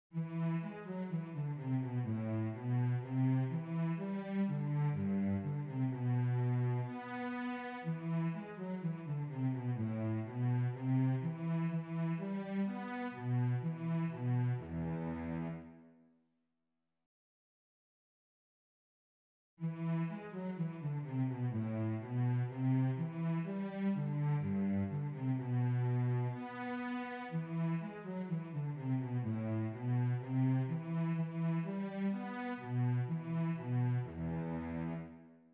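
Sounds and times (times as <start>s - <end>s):
cello: 0.1s - 16.0s, 19.6s - 35.5s.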